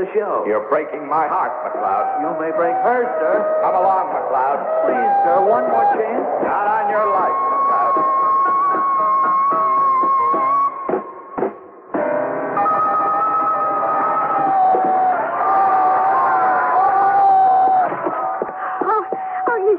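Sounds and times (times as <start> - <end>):
speech: 0.0 - 8.2
crowd cheering and yelling: 0.5 - 19.7.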